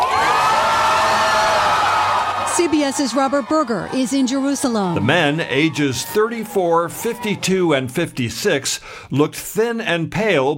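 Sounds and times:
crowd in Tel Aviv cheering the release of hostages: 0.0 - 7.7
speech: 2.6 - 10.5.

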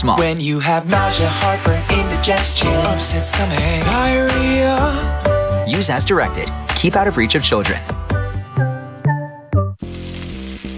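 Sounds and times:
speech: 0.0 - 8.0
steak searing in its juices on a Weber Searwood pellet grill: 9.8 - 10.7.

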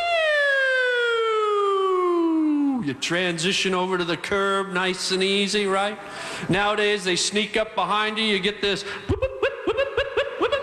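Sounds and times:
police car siren wailing: 0.0 - 2.8
speech: 2.8 - 9.4
laughter: 8.8 - 10.6.

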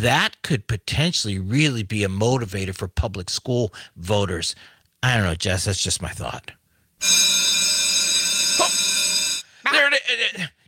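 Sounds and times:
speech: 0.0 - 7.6, 10.0 - 10.6
bell ringing with a bright buzzing metallic tone: 7.0 - 9.7.

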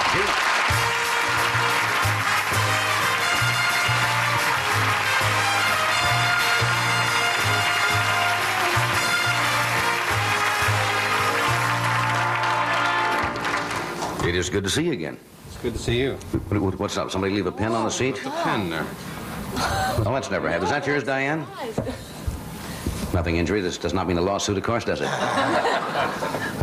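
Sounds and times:
audience applause welcoming actor Gene Hackman onstage: 0.0 - 14.2
music with a rhythmic bass line: 0.7 - 12.1
speech: 14.4 - 22.1, 23.2 - 26.6
laughter: 25.0 - 26.6.

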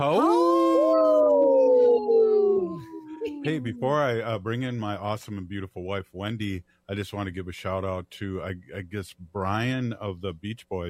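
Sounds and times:
speech: 0.0 - 0.6, 3.4 - 10.8
people imitating a wolf howl: 0.0 - 4.2.

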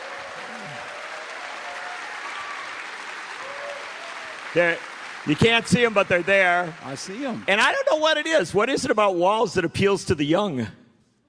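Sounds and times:
whoops from crowd: 0.0 - 4.5
crowd of students applauding: 0.0 - 8.9
speech: 4.6 - 10.8.

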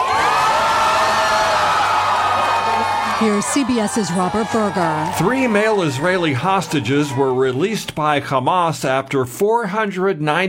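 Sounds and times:
crowd cheering and whooping in celebration: 0.0 - 7.9
speech: 3.2 - 10.4.

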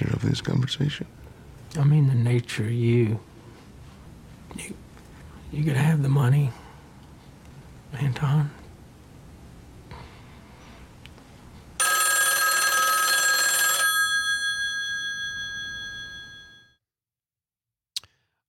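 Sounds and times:
speech: 0.2 - 3.3, 4.5 - 4.8, 5.5 - 6.6, 7.9 - 8.6
telephone bell ringing: 11.8 - 16.8.

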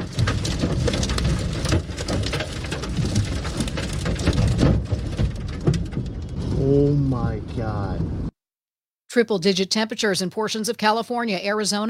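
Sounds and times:
tornado storm passing over a car in Gaithersburg: 0.0 - 8.3
speech: 6.7 - 8.2, 9.2 - 11.8.

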